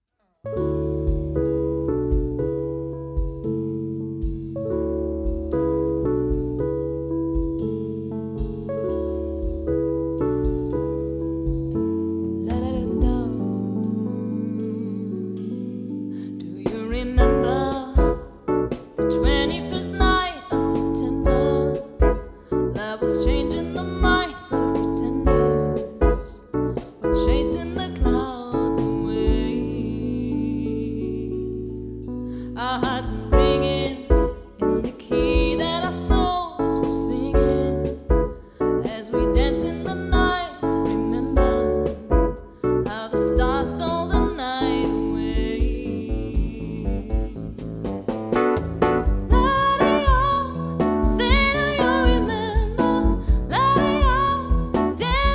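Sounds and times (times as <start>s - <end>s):
live lounge band piano: 0.4s - 55.3s
live lounge band drums: 0.6s - 13.7s, 14.7s - 30.9s, 32.3s - 55.3s
live lounge band vocals: 12.4s - 18.4s, 19.0s - 22.2s, 22.8s - 31.6s, 32.6s - 38.2s, 38.9s - 47.5s, 49.3s - 55.3s.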